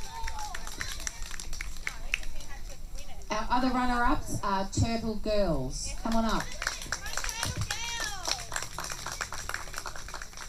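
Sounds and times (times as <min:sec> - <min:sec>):
audience applause: 0:00.0 - 0:02.6, 0:06.0 - 0:10.4
speech: 0:03.3 - 0:06.6.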